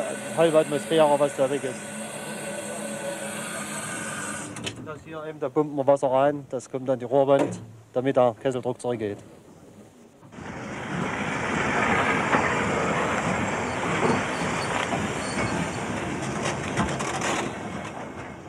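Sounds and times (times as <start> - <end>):
freight train from Saalfeld toward Orlamünde: 0.0 - 5.4, 9.2 - 18.4
speech: 0.4 - 1.9, 4.9 - 9.4.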